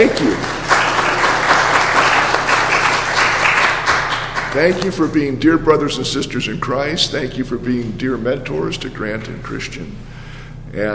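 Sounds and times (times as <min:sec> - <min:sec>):
speech: 0:00.0 - 0:00.6, 0:04.5 - 0:10.1, 0:10.7 - 0:10.9
audience applause: 0:00.0 - 0:04.8.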